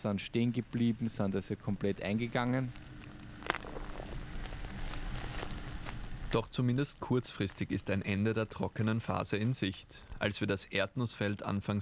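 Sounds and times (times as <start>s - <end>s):
speech: 0.0s - 2.9s, 6.3s - 11.8s
low outdoor rumble: 0.0s - 11.7s
scattered first raindrops pattering on an open field: 0.2s - 6.4s.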